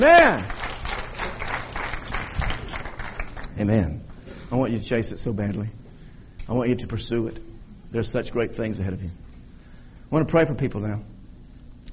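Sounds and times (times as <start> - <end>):
speech: 0.0 - 0.6, 3.6 - 5.8, 6.5 - 9.2, 10.1 - 11.1
church congregation clapping during a service: 0.0 - 4.2.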